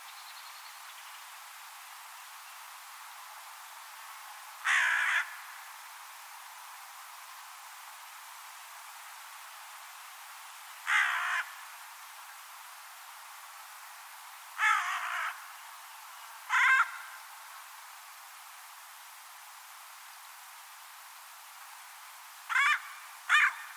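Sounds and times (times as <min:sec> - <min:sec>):
bird cawing: 0:04.6 - 0:05.5, 0:10.9 - 0:11.6, 0:14.6 - 0:15.4, 0:16.5 - 0:17.2, 0:22.5 - 0:23.7.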